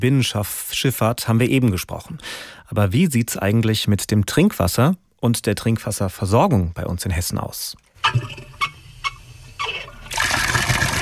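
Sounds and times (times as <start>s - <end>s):
speech: 0.0s - 8.5s
tap turned on, water running: 8.0s - 10.9s.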